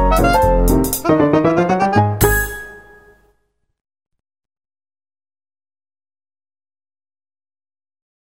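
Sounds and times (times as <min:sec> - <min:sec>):
jazz melody: 0:00.0 - 0:03.3.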